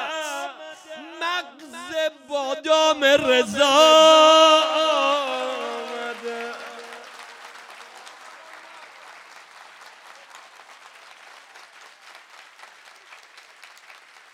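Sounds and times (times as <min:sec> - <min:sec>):
speech: 0:01.4 - 0:05.2
audience applause at an evening celebration: 0:05.1 - 0:14.3.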